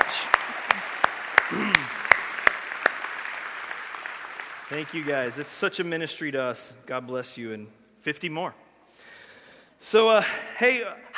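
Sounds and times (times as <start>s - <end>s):
hand claps: 0.0s - 5.5s
speech: 4.7s - 9.1s, 9.8s - 11.1s.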